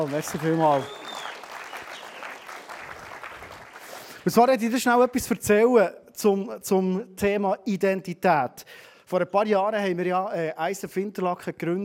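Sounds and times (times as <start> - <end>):
speech: 0.0 - 1.0, 4.2 - 11.8
audience applause: 0.0 - 4.2.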